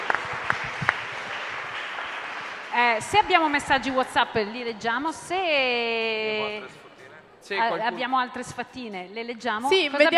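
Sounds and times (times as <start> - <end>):
applause: 0.0 - 4.2
speech: 2.8 - 6.8, 7.4 - 10.1.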